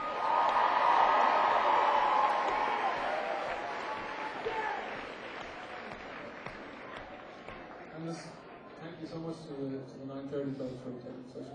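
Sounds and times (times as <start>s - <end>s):
indistinct cheering: 0.0s - 7.9s
crowd applauding: 0.0s - 8.7s
speech: 9.4s - 11.5s.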